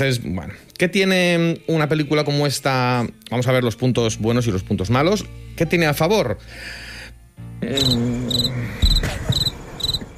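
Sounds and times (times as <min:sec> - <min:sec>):
speech: 0:00.0 - 0:06.8, 0:07.6 - 0:08.9
crickets chirping: 0:07.7 - 0:10.1.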